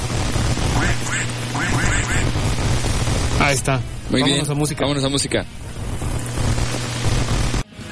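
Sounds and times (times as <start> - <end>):
steady low hum: 0.0 - 7.7
duck quacks: 0.8 - 2.2
speech: 3.5 - 5.7.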